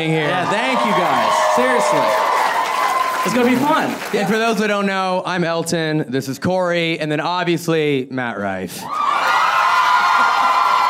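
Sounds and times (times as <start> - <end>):
speech: 0.0 - 2.3, 3.2 - 9.1
live audience cheering: 0.0 - 4.8, 8.9 - 10.8.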